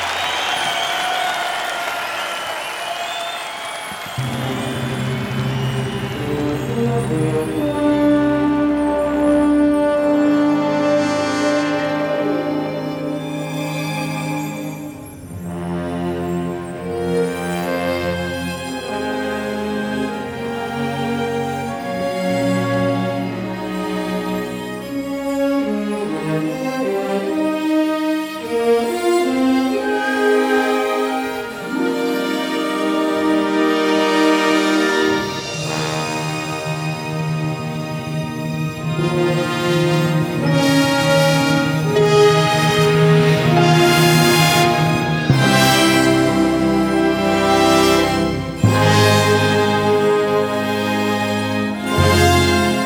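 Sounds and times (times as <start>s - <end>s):
orchestral intro: 0.0s - 52.8s.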